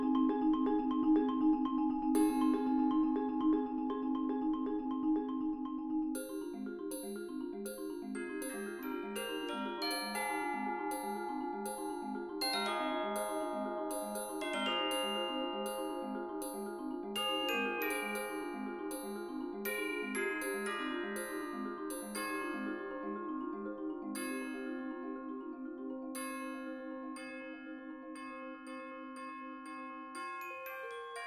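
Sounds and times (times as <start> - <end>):
xylophone in a percussion ensemble: 0.0 - 27.7, 28.5 - 31.2
2 marimbas in a percussion ensemble: 0.0 - 31.2
bells in a percussion ensemble: 0.0 - 31.2
chimes in a percussion ensemble: 0.0 - 31.2
vibraphone in a percussion ensemble: 0.0 - 31.2.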